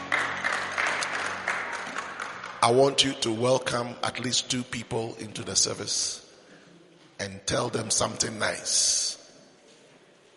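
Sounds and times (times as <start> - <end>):
church congregation applauding: 0.0 - 3.2
speech: 2.6 - 6.2, 7.2 - 9.1.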